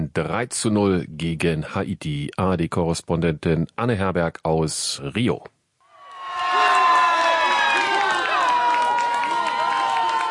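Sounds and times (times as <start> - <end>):
speech: 0.2 - 5.6
large crowd of fans cheering and shouting after a goal: 5.9 - 10.2.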